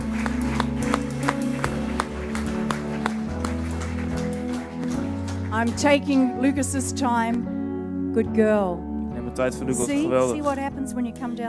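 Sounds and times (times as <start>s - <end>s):
audience applause: 0.0s - 6.2s
speech: 5.6s - 7.6s, 8.2s - 11.4s.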